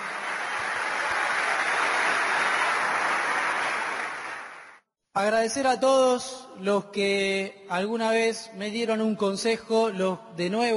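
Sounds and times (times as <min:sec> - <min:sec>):
audience applause: 0:00.0 - 0:04.8
speech: 0:05.2 - 0:10.7.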